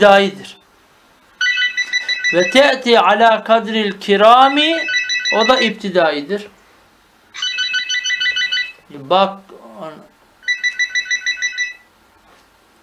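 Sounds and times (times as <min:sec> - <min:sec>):
speech: 0:00.0 - 0:00.6, 0:02.3 - 0:06.5, 0:08.9 - 0:10.1
phone ringtone ringing: 0:01.4 - 0:02.9, 0:04.4 - 0:05.8, 0:07.3 - 0:08.8, 0:10.4 - 0:11.9.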